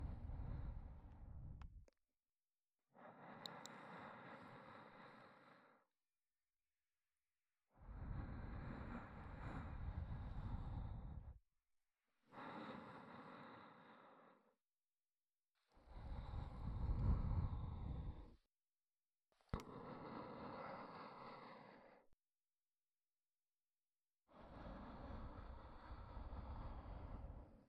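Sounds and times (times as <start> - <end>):
ASMR breathy sighs: 0.0 - 1.6, 2.9 - 5.9, 7.8 - 11.4, 12.2 - 14.6, 15.6 - 18.5, 19.5 - 22.2, 24.3 - 27.6.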